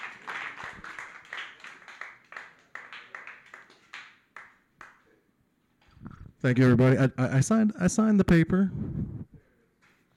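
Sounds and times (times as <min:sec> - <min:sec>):
open mic audience clapping to welcome a comedian: 0:00.0 - 0:05.1
speech: 0:06.4 - 0:09.1.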